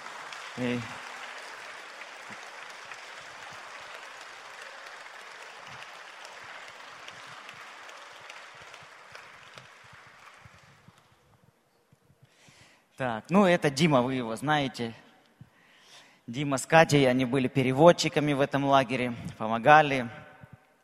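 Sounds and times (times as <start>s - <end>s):
crowd applauding: 0.0s - 11.3s
speech: 0.6s - 1.0s, 13.0s - 15.0s, 16.3s - 20.2s.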